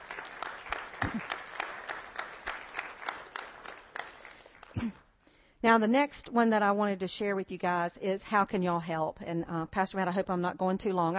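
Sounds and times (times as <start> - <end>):
audience applause: 0.0 - 4.9
speech: 5.6 - 11.1.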